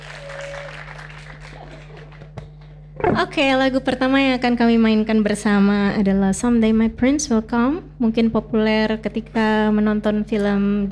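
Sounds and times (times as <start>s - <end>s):
audience applause: 0.0s - 2.7s
speech: 3.1s - 10.9s.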